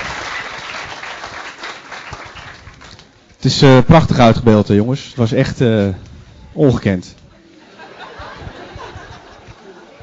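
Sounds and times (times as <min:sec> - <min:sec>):
audience applause: 0:00.0 - 0:03.0
speech: 0:03.4 - 0:07.2
laughter: 0:07.5 - 0:10.0.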